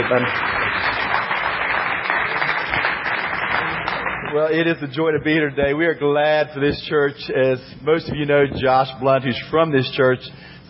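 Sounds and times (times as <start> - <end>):
speech: 0.0 - 0.7, 4.3 - 10.5
church congregation clapping to welcome a speaker: 0.0 - 4.8.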